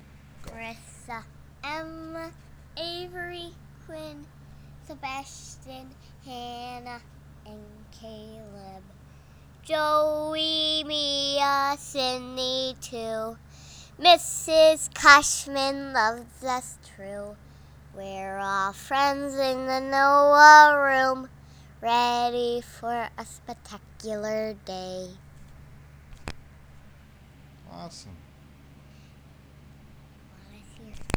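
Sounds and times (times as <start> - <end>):
girl singing a school song: 0.5 - 25.2.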